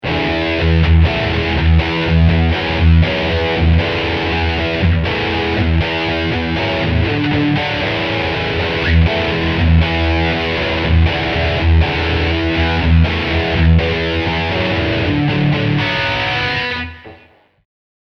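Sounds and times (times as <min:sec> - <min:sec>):
progressive metal riff: 0:00.0 - 0:17.6.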